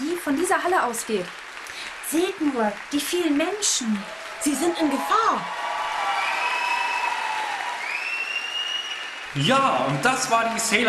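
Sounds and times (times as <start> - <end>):
audience applause: 0.0 - 10.8
speech: 0.3 - 1.4, 2.1 - 5.6, 9.4 - 10.8
sustained whistle-like tones: 7.8 - 9.2.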